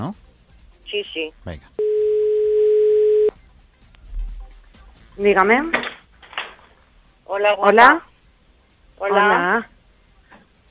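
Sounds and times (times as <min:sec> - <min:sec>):
speech: 0:00.0 - 0:00.3, 0:00.9 - 0:02.0, 0:05.2 - 0:05.8, 0:07.3 - 0:08.1, 0:09.0 - 0:09.7
telephone ringing tone while placing a call: 0:01.8 - 0:03.3.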